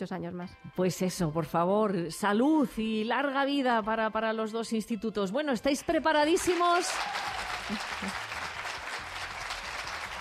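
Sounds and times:
speech: 0.0s - 8.2s
audience applause: 6.4s - 10.2s.

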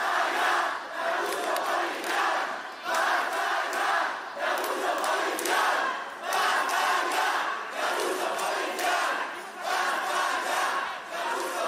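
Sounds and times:
large protest crowd shouting and chanting: 0.0s - 11.6s.

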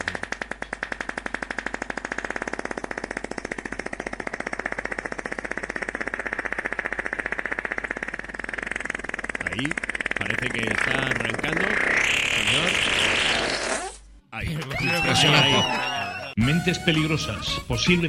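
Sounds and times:
long rattling recorded fart, winner of the 2023 FAF Festival: 0.0s - 14.1s
speech: 9.6s - 13.3s, 14.4s - 18.0s
laughter: 14.4s - 16.4s.

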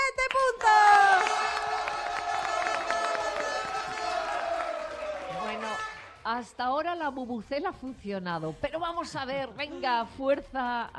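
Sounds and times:
audience applause: 0.6s - 6.1s
crowd cheering: 0.6s - 6.2s
speech: 6.4s - 10.9s.

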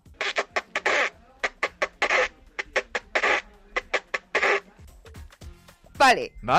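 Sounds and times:
partridge calling: 0.1s - 4.6s
speech: 6.0s - 6.5s.

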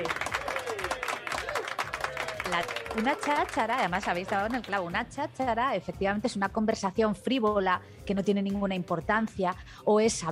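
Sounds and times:
applause from a group of listeners: 0.0s - 5.0s
speech: 2.5s - 10.3s.

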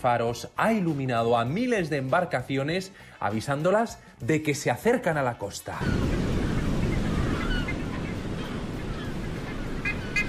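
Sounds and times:
speech: 0.0s - 6.2s
sea waves: 5.7s - 10.2s.

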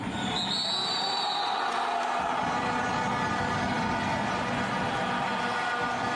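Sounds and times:
shrill whistle tones: 0.1s - 1.8s
football supporters chanting: 1.3s - 6.1s.

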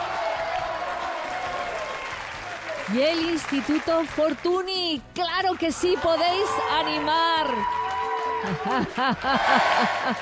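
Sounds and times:
spectators in the stands clapping and cheering for a school team: 0.0s - 10.2s
speech: 2.9s - 7.8s, 8.4s - 10.2s
laughter: 8.4s - 10.2s.

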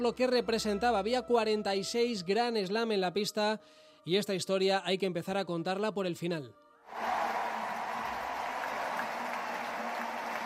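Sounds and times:
speech: 0.0s - 7.1s
crowd ovation in tennis stadium for Nadal in Paris: 6.9s - 10.4s.

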